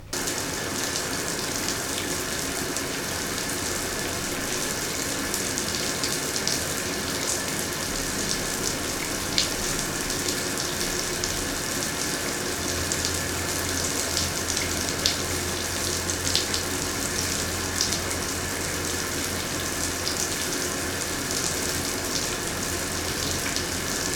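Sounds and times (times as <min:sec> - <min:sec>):
shower water running: 0:00.0 - 0:24.1.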